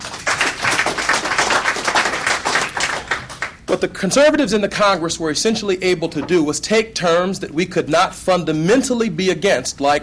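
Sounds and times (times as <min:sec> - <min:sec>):
audience clapping: 0:00.0 - 0:03.8
speech: 0:03.7 - 0:10.0.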